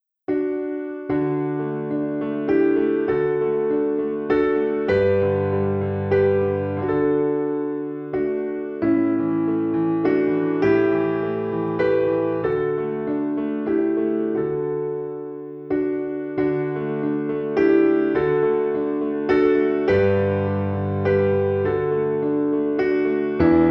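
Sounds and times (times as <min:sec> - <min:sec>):
piano piece: 0:00.0 - 0:23.6.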